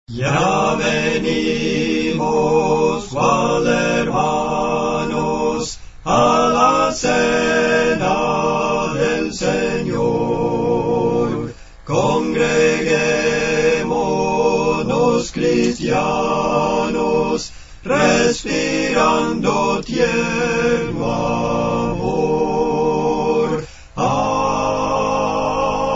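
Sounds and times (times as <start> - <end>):
four voices singing spiritual songs: 0.1 - 25.9.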